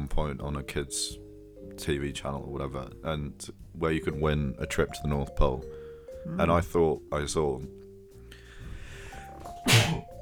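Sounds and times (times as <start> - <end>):
speech: 0.2 - 1.2, 1.8 - 7.8
person sneezing: 9.6 - 10.1.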